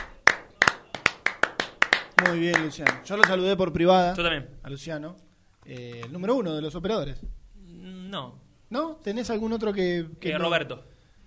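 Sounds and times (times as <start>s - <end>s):
hand clapping: 0.0s - 3.4s, 5.6s - 6.3s
speech: 2.2s - 7.4s, 8.1s - 10.9s.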